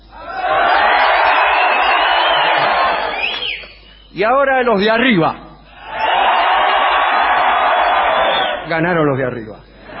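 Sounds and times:
audience section shouting together on cue: 0.1s - 3.3s, 5.8s - 8.7s
speech: 4.2s - 5.4s, 8.7s - 9.7s.

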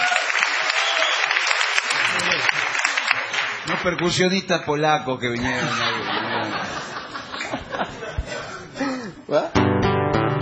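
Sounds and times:
audience applause: 0.0s - 4.1s
speech: 3.8s - 6.2s
laughter: 5.4s - 9.4s.

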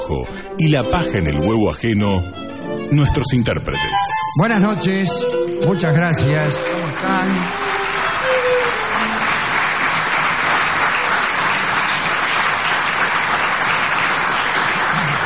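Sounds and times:
speech: 0.1s - 7.8s
audience applause: 6.0s - 15.2s.

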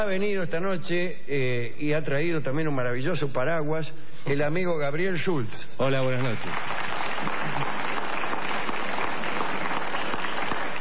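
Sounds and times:
speech: 0.0s - 7.9s
audience applause: 6.2s - 10.7s.

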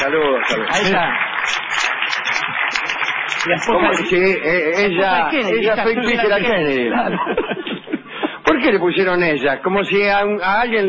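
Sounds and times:
laughter: 0.0s - 1.2s, 3.4s - 8.6s
speech: 0.0s - 1.6s, 3.4s - 7.7s, 8.6s - 10.8s
applause from a small group for the musician: 0.0s - 4.4s.

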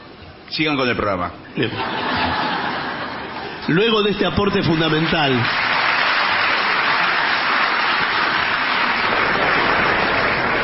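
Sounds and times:
speech: 0.5s - 2.5s, 3.7s - 5.6s
laughter: 1.6s - 3.7s
audience applause: 4.4s - 10.6s.

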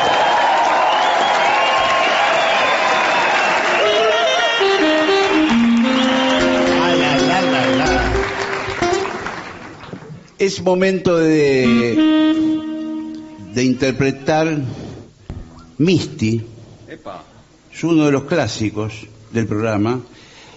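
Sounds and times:
whistles and shouts: 0.0s - 4.7s, 5.8s - 6.9s
audience applause and cheering: 0.0s - 10.2s
tonal notes: 4.5s - 9.3s, 11.6s - 14.0s
speech: 10.4s - 12.1s, 13.6s - 14.8s, 15.8s - 20.2s.

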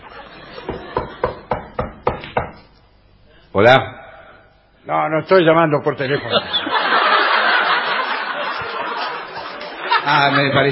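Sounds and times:
laughter: 0.0s - 1.5s, 6.0s - 10.7s
knocking on a door: 0.7s - 2.6s
speech: 3.6s - 4.0s, 4.8s - 6.6s, 10.1s - 10.7s.

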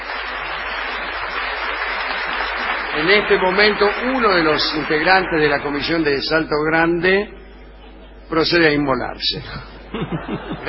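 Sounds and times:
group applause in a Spanish-language comedy segment: 0.0s - 6.3s
speech: 3.0s - 7.4s, 8.3s - 10.6s
laughter: 9.4s - 10.6s.

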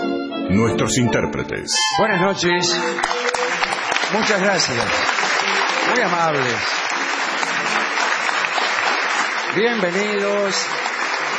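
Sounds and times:
speech: 0.5s - 6.9s, 9.5s - 10.9s
theatre audience giving an ovation as performers arrive: 2.7s - 11.3s.

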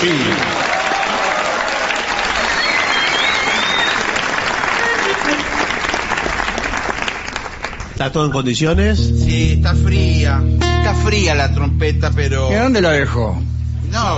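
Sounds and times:
speech: 0.0s - 0.5s, 8.0s - 14.1s
audience applause: 0.0s - 8.0s
faint whistles and cheers: 0.5s - 4.5s.

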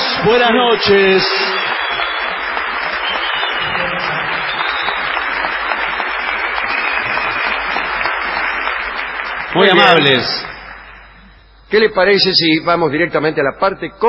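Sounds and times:
large crowd applauding: 0.0s - 11.2s
speech: 0.2s - 1.5s, 9.5s - 10.5s, 11.7s - 14.0s.

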